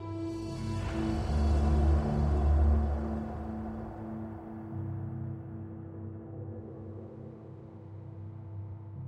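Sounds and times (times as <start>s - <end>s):
death music stinger: 0.0s - 6.2s.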